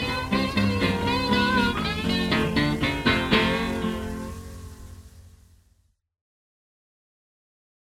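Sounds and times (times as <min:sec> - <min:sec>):
slide guitar: 0:00.0 - 0:05.4.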